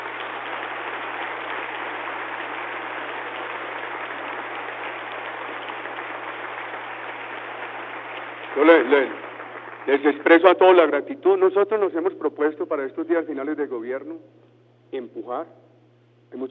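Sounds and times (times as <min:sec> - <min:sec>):
audience applause: 0:00.0 - 0:10.9
speech: 0:08.6 - 0:09.2, 0:09.8 - 0:15.6, 0:16.3 - 0:16.5.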